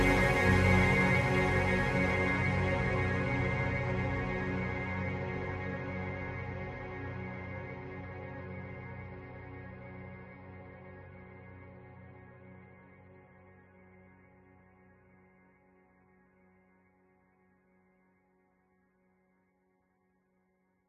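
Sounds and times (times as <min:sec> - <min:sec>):
outer space synth pad: 0:00.0 - 0:13.4.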